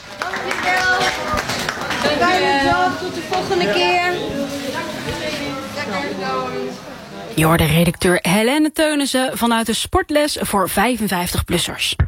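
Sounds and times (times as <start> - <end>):
group applauding themselves: 0.0 - 3.8
speech: 2.1 - 4.4, 5.9 - 12.0.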